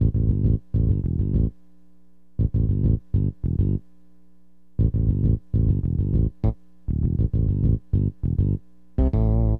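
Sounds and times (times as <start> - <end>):
hip hop bass: 0.0 - 1.5, 2.4 - 3.8, 4.8 - 9.5.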